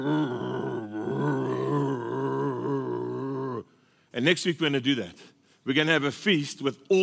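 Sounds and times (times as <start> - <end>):
speech: 0.0 - 0.5, 4.2 - 7.0
human voice imitating a lion grumbling over its kill: 0.0 - 3.7.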